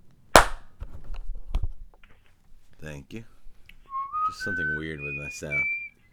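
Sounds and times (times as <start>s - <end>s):
single hand clap: 0.4s - 0.6s
speech: 2.8s - 3.4s, 4.3s - 5.8s.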